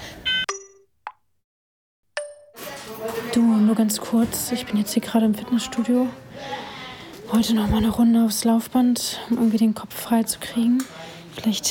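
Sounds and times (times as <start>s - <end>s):
alarm going off: 0.2s - 0.5s
speech: 2.9s - 6.7s, 7.3s - 11.6s.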